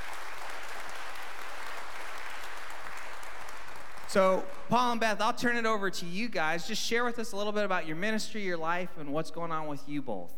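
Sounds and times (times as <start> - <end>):
church audience applauding to welcome missionaries: 0.0 - 4.8
speech: 4.1 - 10.3.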